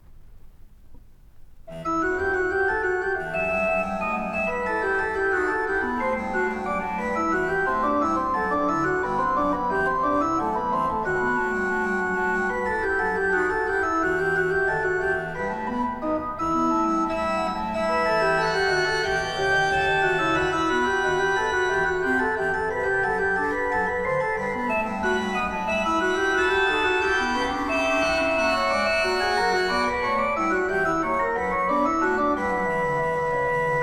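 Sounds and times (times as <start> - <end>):
chorale: 1.7 - 33.8.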